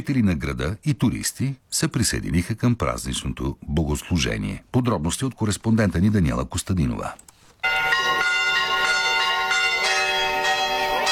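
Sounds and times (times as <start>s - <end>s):
speech: 0.0s - 7.3s
church bells ringing: 7.6s - 11.1s.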